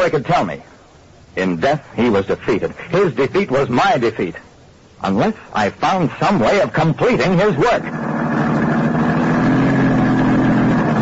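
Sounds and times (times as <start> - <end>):
speech: 0.0 - 8.1
car engine running while driving: 6.2 - 11.0.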